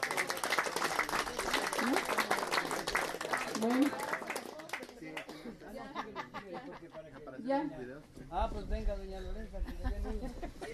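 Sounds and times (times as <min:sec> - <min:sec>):
audience applause: 0:00.0 - 0:05.4
speech: 0:03.6 - 0:04.0, 0:07.5 - 0:10.7
laughter: 0:05.3 - 0:07.4, 0:09.6 - 0:10.7.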